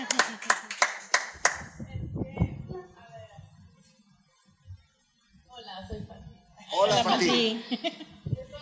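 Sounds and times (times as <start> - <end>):
audience applause: 0.0 - 1.8
laughter: 6.7 - 8.3
speech: 7.0 - 8.0.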